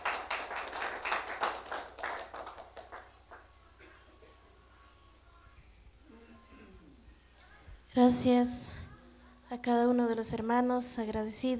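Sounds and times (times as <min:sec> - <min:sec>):
audience applause: 0:00.0 - 0:03.6
speech: 0:08.1 - 0:08.8, 0:09.5 - 0:11.5.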